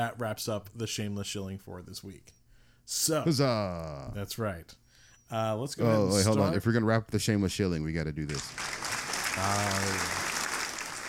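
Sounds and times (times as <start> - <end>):
speech: 0.0 - 8.8, 9.4 - 10.2
applause sound effect: 8.4 - 11.0.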